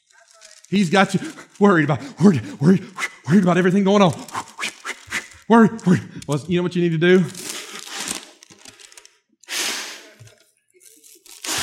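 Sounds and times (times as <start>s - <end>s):
breathing into a bag: 0.3s - 3.5s, 4.1s - 6.3s, 7.2s - 10.4s, 11.2s - 11.6s
speech: 0.7s - 4.4s, 5.5s - 7.4s.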